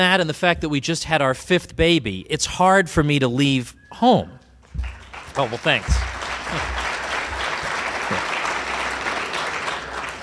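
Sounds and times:
speech: 0.0 - 6.8
audience applause: 4.8 - 10.2.

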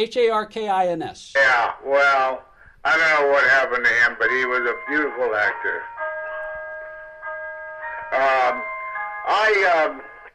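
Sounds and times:
speech: 0.0 - 5.9, 8.1 - 8.7, 9.3 - 10.1
clock chiming: 3.6 - 10.3.

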